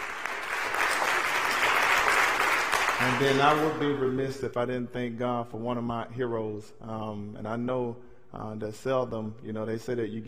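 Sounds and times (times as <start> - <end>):
audience hand clapping applause: 0.0 - 4.1
speech: 3.0 - 10.2.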